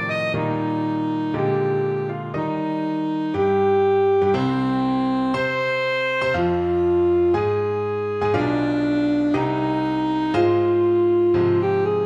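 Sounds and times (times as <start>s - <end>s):
saxophone playing a classical romance: 0.0s - 12.0s.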